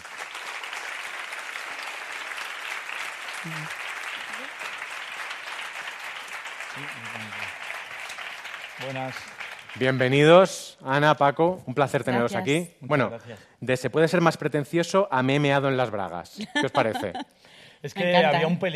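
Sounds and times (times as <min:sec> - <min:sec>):
audience applause: 0:00.0 - 0:10.6
speech: 0:03.4 - 0:03.8, 0:06.8 - 0:07.6, 0:08.8 - 0:18.7
laughter: 0:16.4 - 0:17.2.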